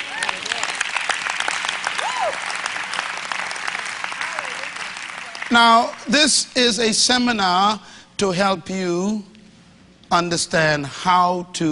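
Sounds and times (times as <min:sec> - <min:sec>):
crowd voices and whoops: 0:00.0 - 0:00.6, 0:01.9 - 0:02.6
audience clapping at a religious seminar: 0:00.0 - 0:06.2
speech: 0:05.5 - 0:09.3, 0:10.1 - 0:11.7.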